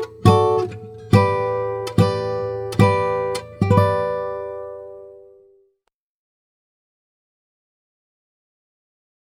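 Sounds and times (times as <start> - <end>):
guitar chord progression: 0.0 - 5.6.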